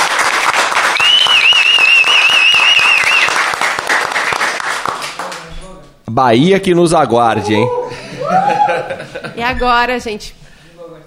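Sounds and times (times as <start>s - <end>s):
audience applause: 0.0s - 5.5s
speech: 6.2s - 10.4s
laughter: 7.3s - 9.6s.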